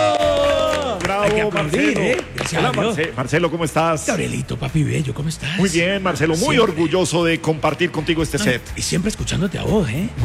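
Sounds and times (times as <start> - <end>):
cheering: 0.0 - 2.2
applause: 0.0 - 3.6
speech: 1.4 - 10.2.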